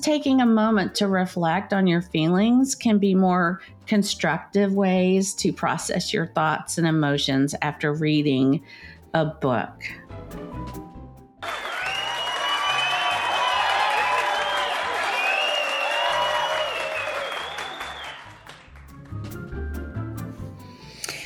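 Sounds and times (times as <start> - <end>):
speech: 0.0 - 10.8
crowd applause and cheering effect: 11.4 - 19.2.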